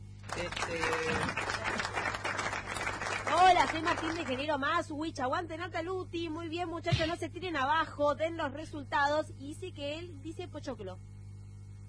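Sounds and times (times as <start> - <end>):
applause from a group of people: 0.2 - 4.5
speech: 0.3 - 1.6, 3.5 - 11.2.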